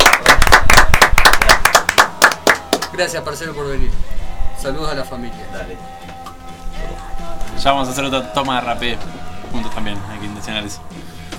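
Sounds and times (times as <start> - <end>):
brisk applause from a small group: 0.0 - 3.0
speech: 3.0 - 6.3, 7.3 - 11.2.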